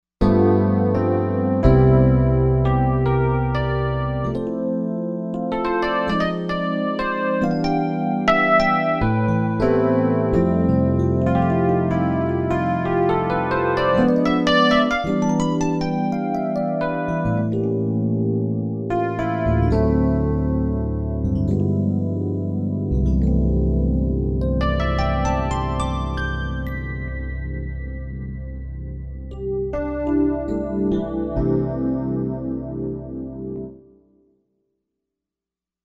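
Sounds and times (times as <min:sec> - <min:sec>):
Rhodes electric piano: 0:00.2 - 0:34.0.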